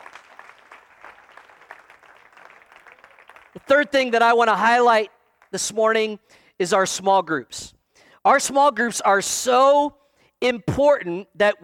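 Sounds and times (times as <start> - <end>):
room full of people clapping: 0.0 - 3.9
speech: 3.6 - 11.6.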